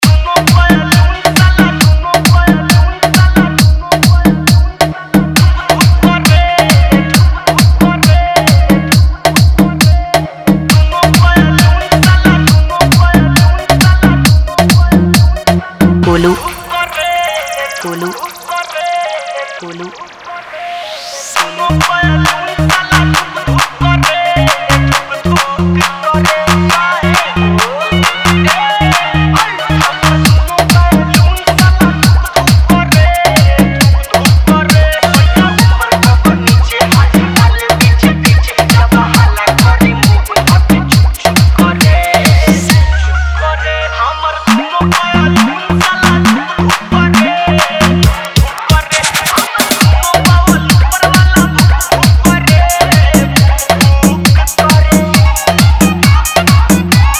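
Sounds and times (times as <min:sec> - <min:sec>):
remix song: 0:00.0 - 0:57.1.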